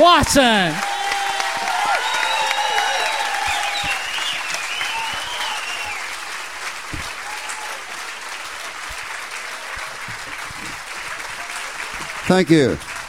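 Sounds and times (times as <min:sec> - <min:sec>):
speech: 0:00.0 - 0:00.9, 0:12.3 - 0:12.9
concert audience applause welcoming two performers onto the stage: 0:00.0 - 0:13.0
scattered whistles from the concert audience: 0:00.8 - 0:06.3.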